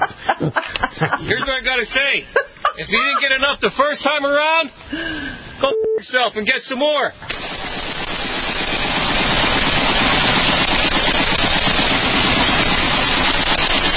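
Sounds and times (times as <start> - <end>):
laughter: 0.0 - 4.6
speech: 0.0 - 7.7
rapid automatic gunfire: 7.3 - 13.9.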